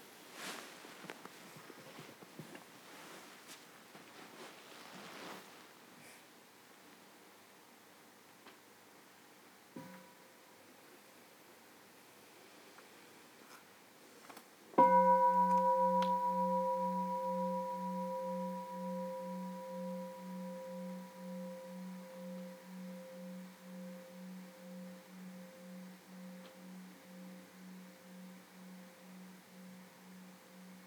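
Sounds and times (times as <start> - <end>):
small meditation bell ringing: 14.8 - 30.8.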